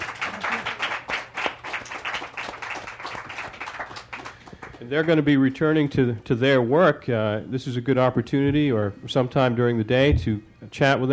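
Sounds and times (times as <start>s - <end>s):
audience applause: 0.0s - 4.9s
speech: 4.8s - 11.1s.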